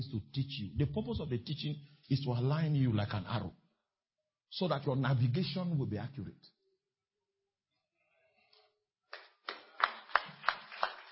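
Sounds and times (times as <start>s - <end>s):
speech: 0.0s - 3.6s, 4.5s - 6.6s
crowd clapping in rhythm in a large room: 9.1s - 11.1s.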